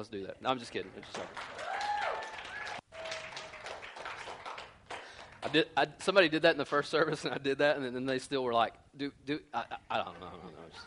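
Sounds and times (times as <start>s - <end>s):
speech: 0.0s - 1.6s, 5.5s - 10.8s
audience clapping: 0.5s - 5.7s.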